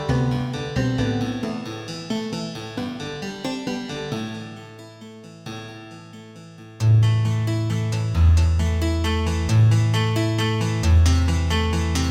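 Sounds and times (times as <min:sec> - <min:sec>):
music with reduced bass: 0:00.0 - 0:02.9, 0:06.8 - 0:12.0.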